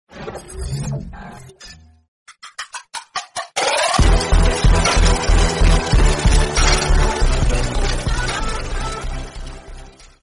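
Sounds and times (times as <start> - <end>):
intro music: 3.8 - 9.9.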